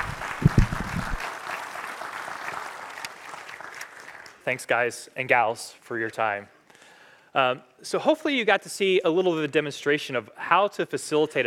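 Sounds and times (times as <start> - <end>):
audience applause: 0.0 - 4.4
speech: 4.5 - 6.6, 7.4 - 11.4.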